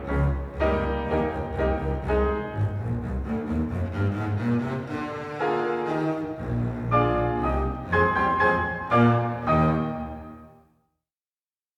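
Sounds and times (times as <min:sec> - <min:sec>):
double bass: 0:00.0 - 0:10.3.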